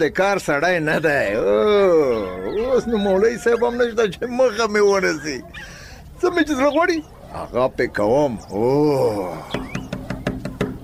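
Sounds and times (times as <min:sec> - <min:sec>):
speech: 0:00.0 - 0:09.8
knocking on the door of a hujra: 0:09.6 - 0:10.8.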